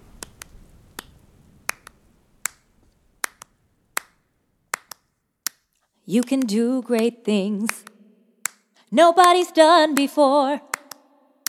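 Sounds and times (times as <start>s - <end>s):
clapping along: 1.7s - 2.6s, 3.2s - 4.2s, 4.8s - 5.0s, 6.2s - 7.1s, 7.7s - 8.6s, 9.2s - 11.4s
speech: 6.1s - 7.9s, 8.9s - 10.7s.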